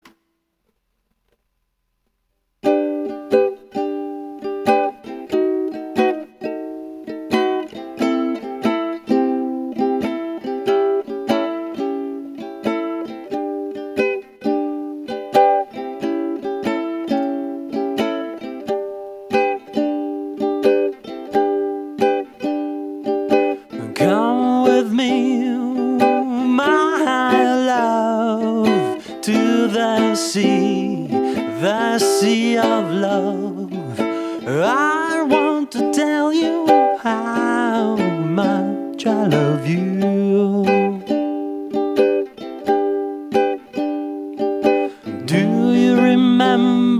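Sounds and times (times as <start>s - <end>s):
ukulele: 2.6s - 46.9s.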